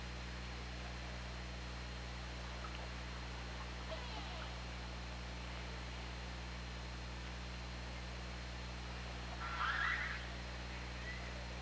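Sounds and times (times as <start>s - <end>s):
low droning hum: 0.0s - 11.6s
killer whale call: 9.4s - 10.3s.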